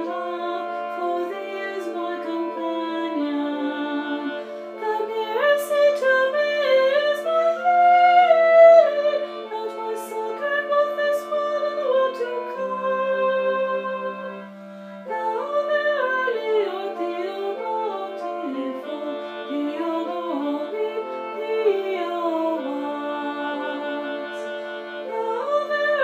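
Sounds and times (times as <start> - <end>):
soprano voice singing: 0.0 - 14.3, 15.1 - 24.4, 25.0 - 26.0.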